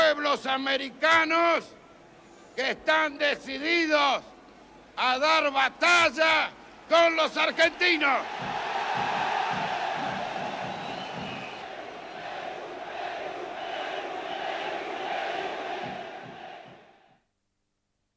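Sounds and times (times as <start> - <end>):
speech: 0.4 - 1.8, 2.6 - 4.3, 5.0 - 8.6
crowd shouting Peru: 7.5 - 17.1.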